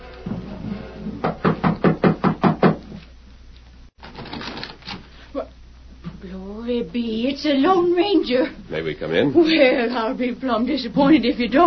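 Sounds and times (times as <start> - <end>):
knocking on a wooden door: 1.2 - 2.9
speech: 7.0 - 11.6.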